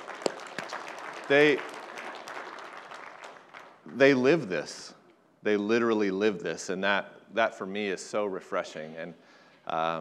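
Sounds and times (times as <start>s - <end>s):
audience clapping: 0.0s - 4.4s
speech: 1.3s - 1.7s, 3.9s - 9.9s.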